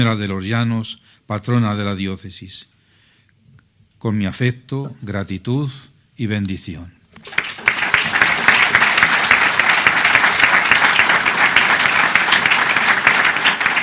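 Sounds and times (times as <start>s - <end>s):
speech: 0.0s - 2.7s, 4.0s - 7.4s
prolonged applause: 7.2s - 13.8s.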